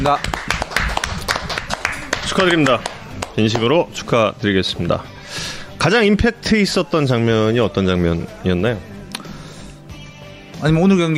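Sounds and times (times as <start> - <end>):
speech: 0.0 - 0.3, 2.4 - 8.9, 10.6 - 11.1
people clapping: 0.0 - 3.8.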